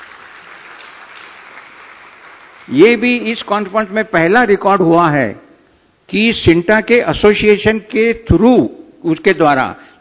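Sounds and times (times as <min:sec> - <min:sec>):
audience applause at a conference in India: 0:00.0 - 0:02.8
speech: 0:02.6 - 0:05.4, 0:06.1 - 0:10.0.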